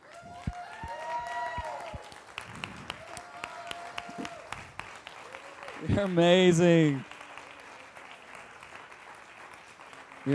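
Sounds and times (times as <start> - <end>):
audience applause: 0.0 - 10.3
speech: 5.8 - 7.1.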